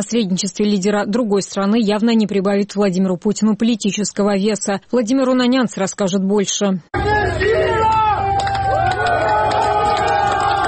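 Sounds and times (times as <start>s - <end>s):
speech: 0.0s - 8.0s
Rostov-on-Don residents exclaiming: 7.0s - 10.6s.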